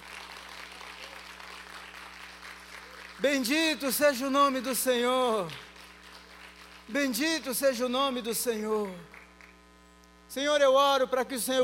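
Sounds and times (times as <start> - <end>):
crowd applause: 0.0 - 3.4, 5.5 - 6.9
low electrical hum: 0.0 - 11.6
speech: 3.2 - 5.7, 6.9 - 9.1, 10.3 - 11.6.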